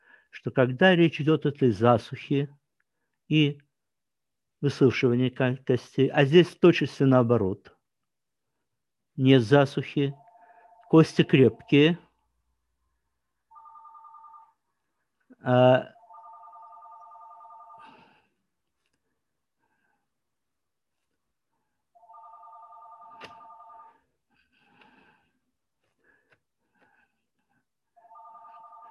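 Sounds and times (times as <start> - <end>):
speech: 0.4 - 2.6, 3.3 - 3.6, 4.6 - 7.8, 9.2 - 10.2, 10.9 - 12.0, 15.4 - 15.9
telephone ringing in the background: 10.1 - 12.0, 13.5 - 14.6, 15.8 - 18.1, 22.0 - 24.1, 28.0 - 28.8.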